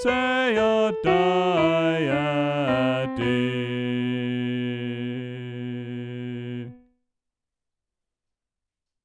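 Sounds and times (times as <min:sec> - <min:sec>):
alto voice singing: 0:00.0 - 0:07.0.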